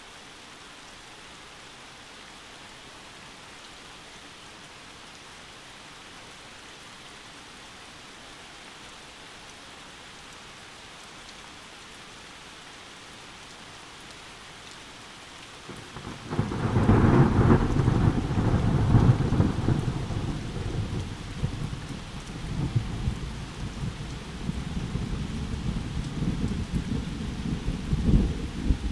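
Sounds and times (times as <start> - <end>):
thunderstorm: 15.7 - 28.9.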